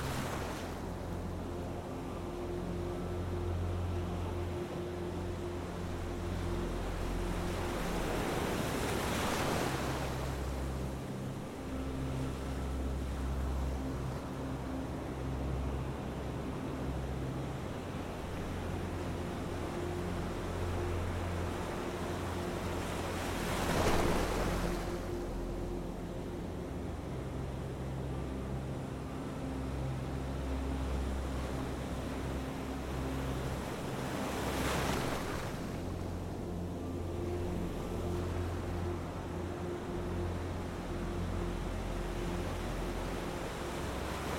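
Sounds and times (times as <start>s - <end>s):
ocean waves: 0.0s - 44.3s
relaxing music: 0.0s - 44.3s.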